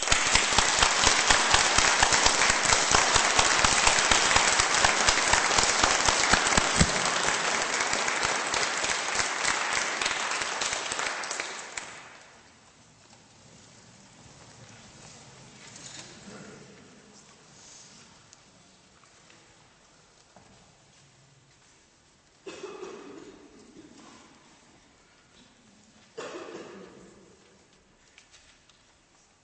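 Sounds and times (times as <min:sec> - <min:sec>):
thunderous applause from standing audience: 0:00.0 - 0:12.2.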